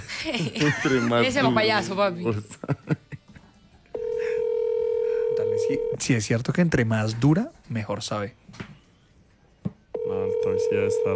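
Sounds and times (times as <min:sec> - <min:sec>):
laughter: 0:00.0 - 0:01.6, 0:02.4 - 0:03.6
speech: 0:00.2 - 0:03.0, 0:05.7 - 0:08.7, 0:10.7 - 0:11.1
steady telephone tone: 0:04.0 - 0:06.0, 0:10.0 - 0:11.1.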